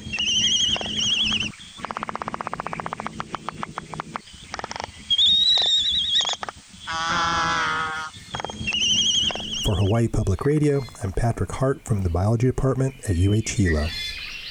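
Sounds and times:
seabird bill clapping in courtship display: 0.0s - 6.7s, 7.9s - 13.8s
seabird whining and groaning calls: 0.0s - 11.1s
speech: 10.0s - 14.0s.

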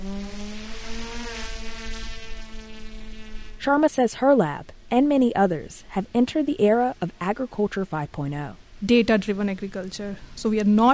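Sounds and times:
drones buzzing overhead: 0.0s - 4.3s
speech: 3.6s - 10.9s.

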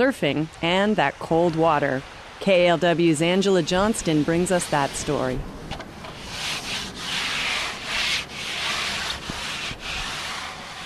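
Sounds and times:
speech: 0.0s - 5.6s
pink and white striped 8-foot-long surfboard being coated by hand: 4.0s - 10.8s.

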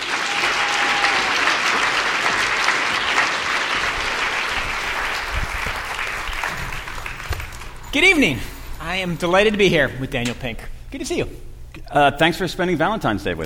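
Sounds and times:
audience applause at an evening conversation event at the JCC: 0.0s - 7.9s
speech: 7.9s - 13.4s.

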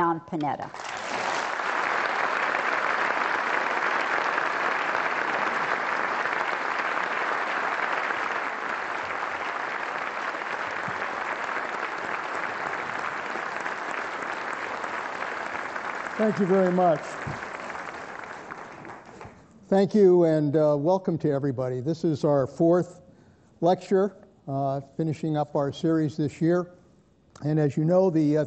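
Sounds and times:
speech: 0.2s - 1.0s, 16.2s - 17.5s, 19.7s - 23.0s, 23.6s - 26.8s, 27.4s - 28.4s
large lecture audience applause welcoming moderator Leon Panetta: 0.7s - 19.5s.

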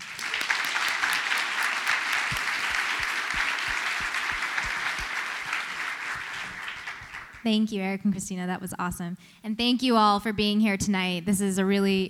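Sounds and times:
town hall audience applauding the panel: 0.0s - 7.4s
speech: 7.4s - 12.0s.

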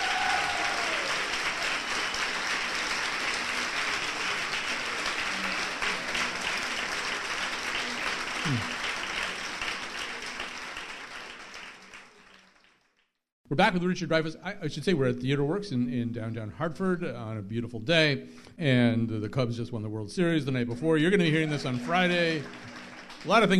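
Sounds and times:
audience applause: 0.0s - 13.0s, 21.2s - 23.5s
speech: 8.5s - 8.8s, 13.5s - 23.5s.

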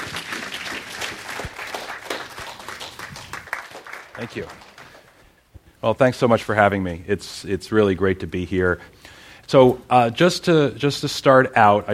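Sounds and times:
audience clapping welcoming a speaker to the JCCSF: 0.0s - 5.4s
speech: 4.2s - 4.7s, 5.8s - 11.9s.

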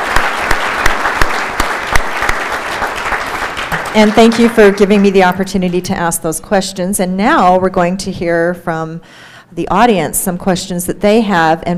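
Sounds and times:
crowd clapping: 0.0s - 5.4s
speech: 3.9s - 11.7s.

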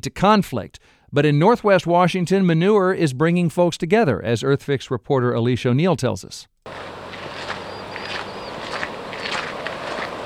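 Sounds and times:
speech: 0.0s - 7.0s
footsteps crunching on clamshells and pebbles on the shore of Portage Bay: 6.7s - 10.2s.

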